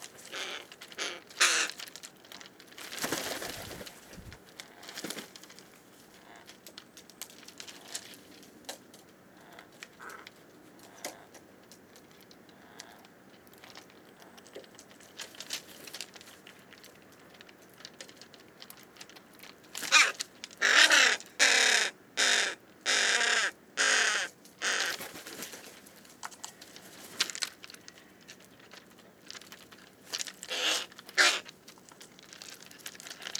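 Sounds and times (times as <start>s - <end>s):
hooded crow Corvus cornix cornix calling: 0.2s - 1.8s, 19.8s - 25.0s, 30.5s - 31.5s.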